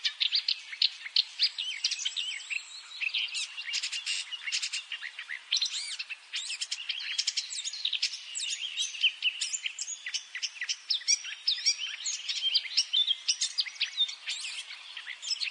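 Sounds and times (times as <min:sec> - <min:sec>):
Eurasian blackcap Sylvia atricapilla singing a varied warble: 0:00.0 - 0:15.4.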